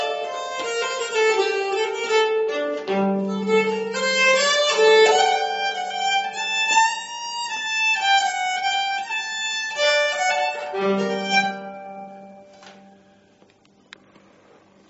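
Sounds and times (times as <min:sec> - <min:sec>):
nyckelharpa playing slowly: 0:00.0 - 0:13.2.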